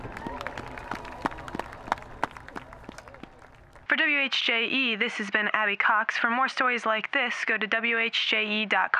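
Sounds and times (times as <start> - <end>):
audience applause: 0.0 - 3.8
crowd murmur: 0.0 - 3.8
speech: 4.2 - 8.9.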